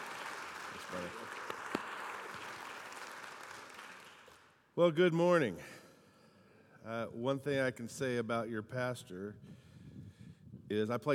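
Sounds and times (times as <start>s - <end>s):
church congregation applauding to welcome a speaker at a service: 0.0s - 4.6s
speech: 4.8s - 5.8s, 6.8s - 9.6s, 10.7s - 11.1s.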